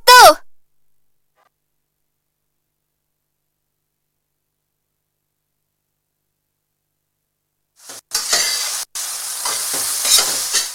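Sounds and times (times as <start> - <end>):
food frying in a pan while stirred: 7.8 - 10.7.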